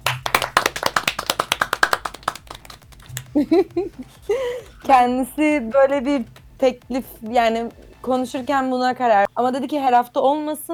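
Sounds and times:
applause, hand clapping: 0:00.0 - 0:08.4
laughter: 0:02.6 - 0:05.1
speech: 0:03.4 - 0:10.7.

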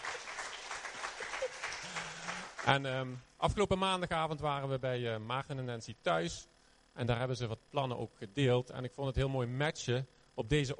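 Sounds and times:
laughter: 0:00.0 - 0:02.6
audience applause: 0:00.0 - 0:02.7
speech: 0:02.6 - 0:10.7.

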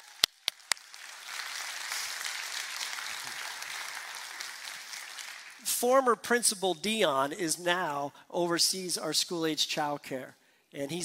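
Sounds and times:
audience applause: 0:00.0 - 0:05.6
speech: 0:05.8 - 0:11.0.

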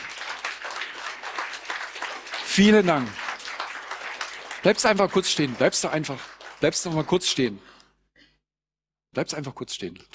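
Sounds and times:
applause: 0:00.0 - 0:07.6
speech: 0:02.6 - 0:03.2, 0:04.6 - 0:07.7, 0:09.2 - 0:10.1.

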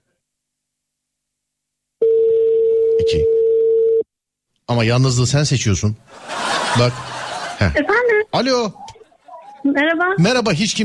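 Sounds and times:
telephone call ringing tone: 0:02.0 - 0:04.0
speech: 0:03.0 - 0:03.4, 0:04.7 - 0:08.8, 0:09.6 - 0:10.8
laughter: 0:06.1 - 0:08.1.

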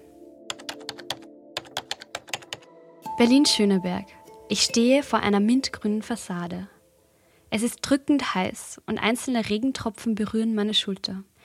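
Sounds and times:
keyboard typing an email: 0:00.5 - 0:02.7
speech: 0:03.2 - 0:06.7, 0:07.5 - 0:11.3.

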